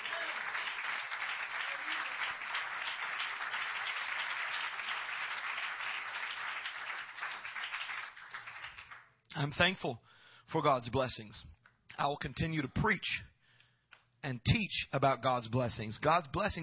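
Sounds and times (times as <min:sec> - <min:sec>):
audience clapping hands: 0:00.0 - 0:09.2
speech: 0:09.4 - 0:13.3, 0:14.2 - 0:16.6.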